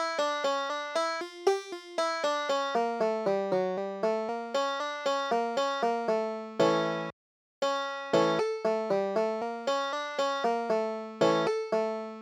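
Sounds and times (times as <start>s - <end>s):
banjo playing khosidl dance music: 0.0s - 12.1s.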